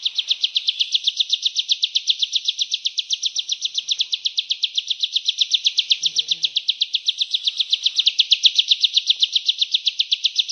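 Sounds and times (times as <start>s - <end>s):
Hill Prinia song of quick evenly spaced high chirps: 0.0s - 10.4s.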